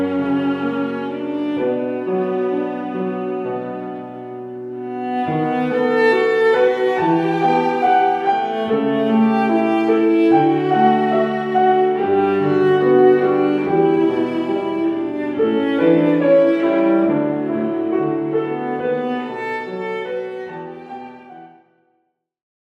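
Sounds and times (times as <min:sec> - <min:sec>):
viola: 0:00.0 - 0:21.7
piano: 0:00.0 - 0:22.0.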